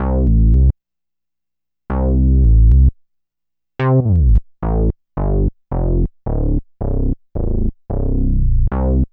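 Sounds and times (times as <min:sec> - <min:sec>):
bass: 0:00.0 - 0:00.8, 0:01.9 - 0:03.0, 0:03.8 - 0:09.1.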